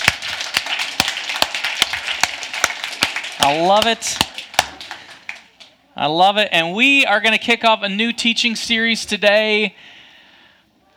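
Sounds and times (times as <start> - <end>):
audience clapping in rhythm: 0.0 - 5.8
speech: 3.4 - 4.3, 6.0 - 9.9.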